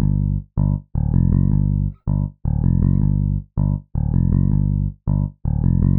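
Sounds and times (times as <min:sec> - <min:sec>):
bass: 0:00.0 - 0:05.9.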